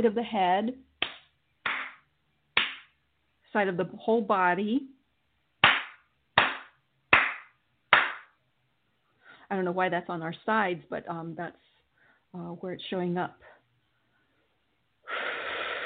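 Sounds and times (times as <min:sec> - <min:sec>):
speech: 0:00.0 - 0:00.9, 0:03.6 - 0:05.0, 0:09.5 - 0:11.7, 0:12.3 - 0:13.5
hand clapping for energy clearing: 0:01.0 - 0:03.0, 0:05.6 - 0:08.4.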